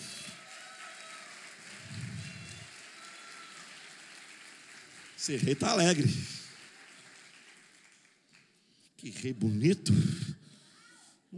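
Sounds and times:
audience applause: 0:00.0 - 0:08.6
speech: 0:05.2 - 0:06.4, 0:09.0 - 0:10.2.

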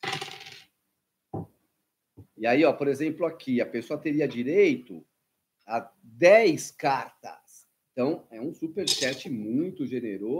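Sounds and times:
three dice being thrown: 0:00.0 - 0:00.7, 0:08.9 - 0:09.2
speech: 0:02.4 - 0:05.1, 0:05.7 - 0:07.4, 0:08.0 - 0:10.3.

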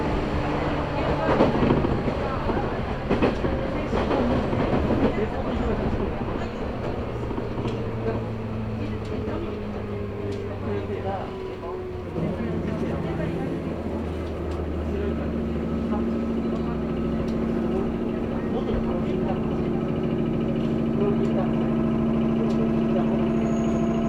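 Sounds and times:
Chuo East Line local train rumble and rattle: 0:00.0 - 0:24.0
voices: 0:00.0 - 0:24.0.

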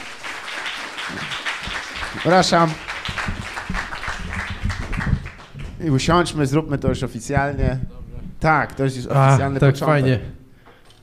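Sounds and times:
crowd applauding: 0:00.0 - 0:06.1
speech: 0:01.1 - 0:01.4, 0:02.1 - 0:02.9, 0:05.8 - 0:10.4.

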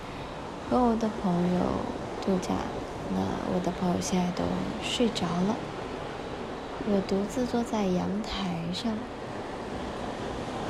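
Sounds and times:
ocean waves on the shore: 0:00.0 - 0:10.6
speech: 0:00.7 - 0:05.8, 0:06.8 - 0:09.2.

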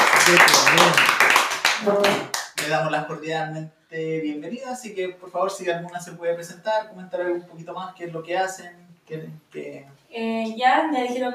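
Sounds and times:
audience applause: 0:00.0 - 0:02.8
speech: 0:00.2 - 0:01.1, 0:01.8 - 0:11.3.

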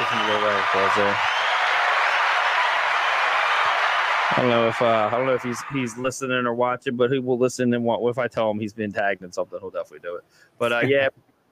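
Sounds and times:
round of applause: 0:00.0 - 0:06.0
speech: 0:00.3 - 0:01.5, 0:04.3 - 0:11.3.

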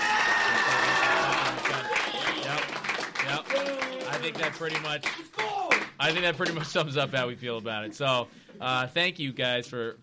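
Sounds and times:
audience applause: 0:00.0 - 0:06.6
speech: 0:04.3 - 0:05.4, 0:06.0 - 0:10.0.

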